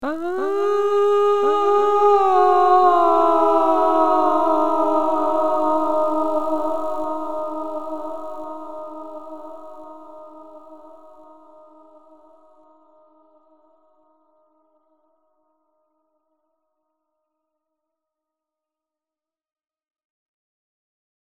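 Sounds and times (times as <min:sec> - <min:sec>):
vocals: 0:00.0 - 0:13.6.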